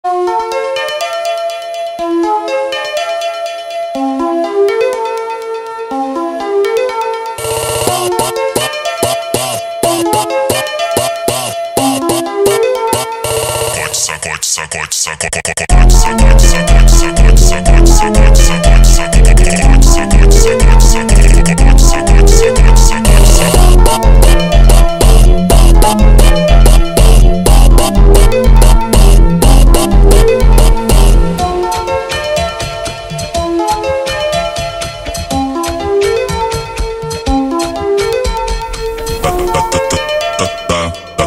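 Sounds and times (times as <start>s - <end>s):
dreamcore funk music: 0.4s - 14.1s, 15.7s - 41.2s.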